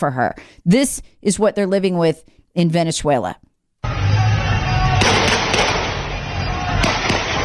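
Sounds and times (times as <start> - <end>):
speech: 0.0 - 3.5
gunshots fired at a crowd: 4.9 - 7.4.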